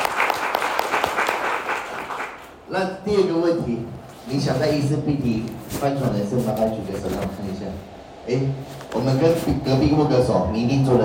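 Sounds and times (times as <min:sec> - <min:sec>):
audience applause: 0:00.0 - 0:02.5
speech: 0:02.7 - 0:11.0.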